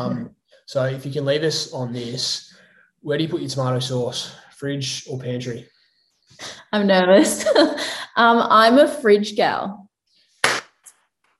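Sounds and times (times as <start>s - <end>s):
speech: 0.0s - 5.7s, 6.3s - 9.8s
hand clapping: 10.4s - 10.9s.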